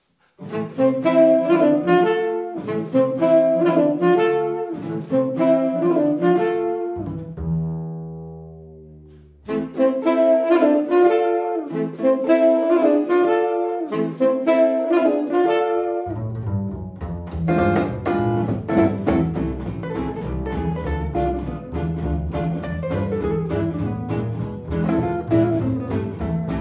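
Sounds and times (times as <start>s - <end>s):
swing band playing: 0.4s - 7.7s, 9.5s - 26.5s.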